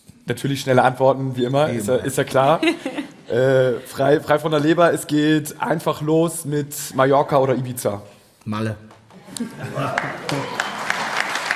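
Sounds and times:
speech: 0.3s - 10.6s
laughter: 2.2s - 4.7s, 9.1s - 11.4s
applause during a German quiz-style either-or game: 8.9s - 11.5s.

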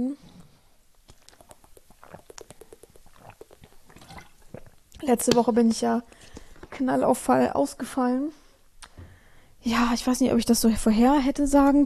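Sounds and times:
speech: 0.0s - 0.3s, 5.0s - 8.4s, 9.6s - 11.8s
person sipping water: 0.2s - 5.0s.

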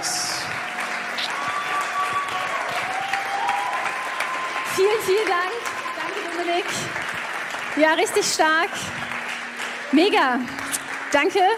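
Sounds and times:
audience applause: 0.0s - 11.5s
faint whistles and cheers: 0.5s - 6.7s
speech: 4.8s - 5.7s, 6.4s - 7.2s, 7.8s - 9.0s, 9.9s - 11.5s.

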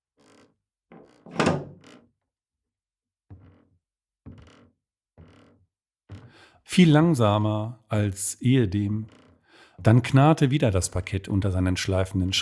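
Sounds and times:
door bolt being slowly locked: 1.0s - 1.9s
speech: 6.7s - 9.2s, 9.8s - 12.4s.

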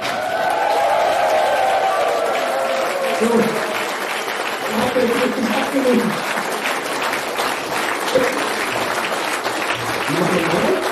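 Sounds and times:
audience applause: 0.0s - 10.9s
speech: 3.2s - 3.6s, 5.0s - 6.2s.

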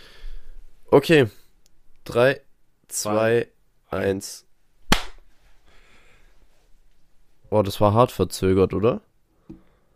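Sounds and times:
speech: 0.9s - 1.4s, 2.1s - 4.4s, 7.5s - 9.6s
hand clap for audio sync: 4.9s - 5.2s.

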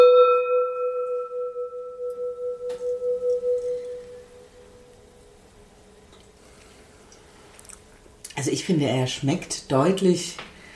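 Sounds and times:
gong being struck: 0.0s - 5.2s
speech: 8.5s - 10.5s.

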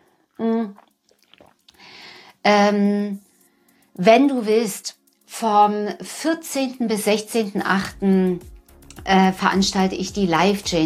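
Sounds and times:
person taking a sip of water: 0.1s - 2.2s
speech: 2.4s - 3.2s, 4.0s - 10.8s.

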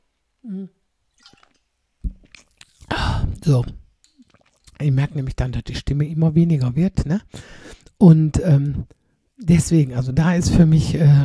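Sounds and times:
speech: 0.4s - 0.8s, 3.5s - 3.8s, 4.8s - 11.2s
gulping and swallowing a drink: 2.1s - 4.9s.

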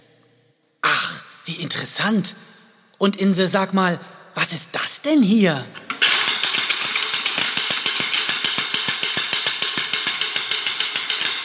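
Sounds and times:
speech: 1.5s - 5.9s
night watchman's wooden ratchet rattle being swung: 5.8s - 11.4s.

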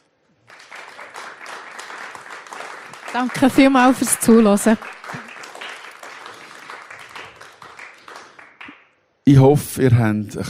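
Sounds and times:
crowd applause: 0.4s - 8.8s
speech: 3.1s - 5.2s, 9.3s - 10.4s.

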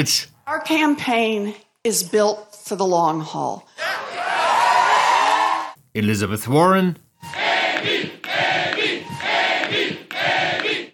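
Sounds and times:
speech: 0.0s - 4.0s, 6.0s - 7.4s
crowd cheering at campaign event: 3.8s - 5.8s, 7.2s - 10.9s.

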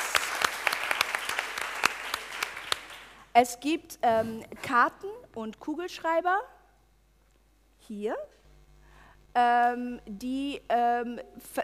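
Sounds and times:
audience applause: 0.0s - 3.2s
speech: 3.4s - 6.6s, 7.9s - 8.4s, 9.4s - 11.6s.

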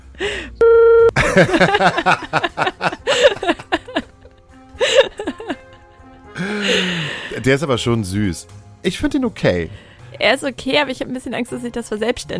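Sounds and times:
electronic censor bleep over a spoken name: 0.6s - 1.2s
laughter: 1.2s - 6.1s
speech: 1.4s - 3.6s, 6.6s - 12.3s.

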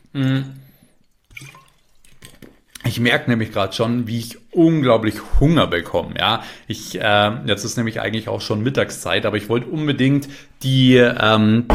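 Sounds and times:
brief voiced throat sound: 0.0s - 0.8s
slurping and swallowing a sip of water: 0.0s - 2.9s
soft splash of liquid: 1.0s - 2.9s
speech: 2.9s - 11.7s.

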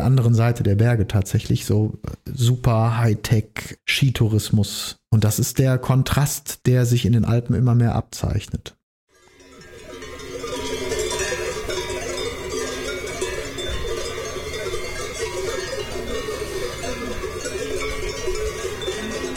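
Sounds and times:
speech: 0.1s - 8.8s
many bells clanking and ringing: 9.1s - 19.3s.

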